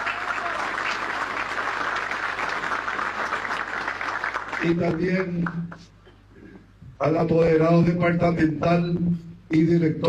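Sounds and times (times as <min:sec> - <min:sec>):
crowd applauding: 0:00.0 - 0:05.8
speech: 0:04.6 - 0:06.0, 0:07.0 - 0:10.0.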